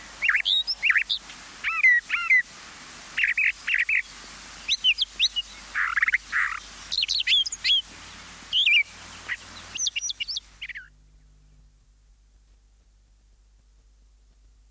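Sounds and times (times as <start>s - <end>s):
songbirds singing: 0.0s - 2.5s, 3.2s - 11.7s.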